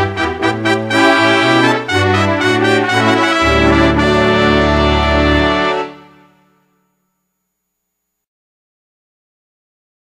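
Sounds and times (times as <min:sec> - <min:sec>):
hornpipe tune: 0:00.0 - 0:07.3.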